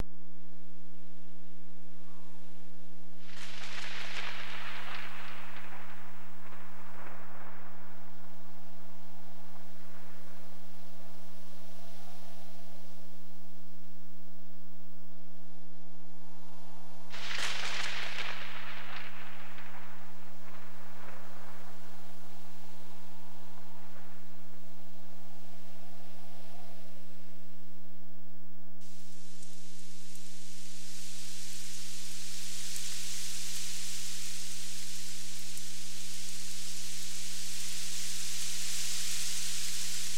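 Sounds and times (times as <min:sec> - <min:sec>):
wind: 0:00.0 - 0:40.1
thunder: 0:03.3 - 0:10.5, 0:17.1 - 0:25.0.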